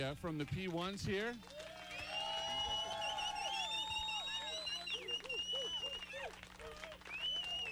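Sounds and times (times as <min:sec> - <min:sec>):
speech: 0:00.0 - 0:01.8
crowd applauding: 0:00.0 - 0:07.7
crowd whistles and whoops: 0:01.5 - 0:07.7.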